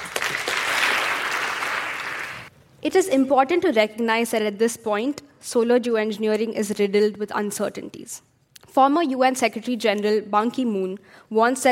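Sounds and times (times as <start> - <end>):
audience clapping to welcome a debater at a formal debate: 0.0 - 2.5
speech: 2.8 - 11.7.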